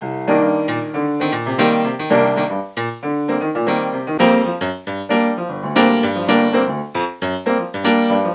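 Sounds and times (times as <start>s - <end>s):
jazz music: 0.0s - 8.3s.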